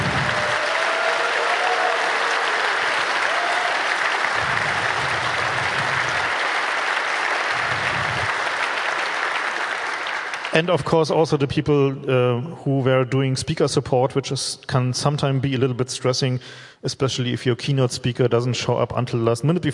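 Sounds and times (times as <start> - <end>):
audience applause: 0.0 - 10.9
low rumbles: 4.3 - 6.4, 7.5 - 8.4
speech: 10.6 - 19.7.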